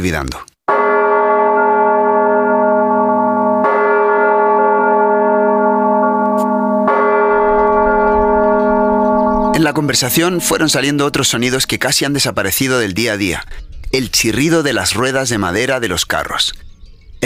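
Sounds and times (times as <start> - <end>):
speech: 0.0 - 0.5, 9.6 - 16.6
manual church bell ringing in Spain: 0.7 - 17.2.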